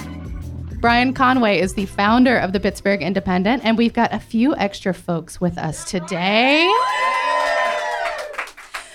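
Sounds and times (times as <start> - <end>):
speech: 0.8 - 7.4
live crowd cheering: 5.9 - 8.9.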